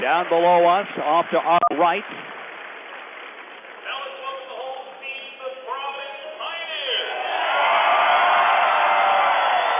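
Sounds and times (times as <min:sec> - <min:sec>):
speech: 0:00.0 - 0:02.3
gym crowd murmur swelling into cheering and clapping: 0:07.0 - 0:09.7.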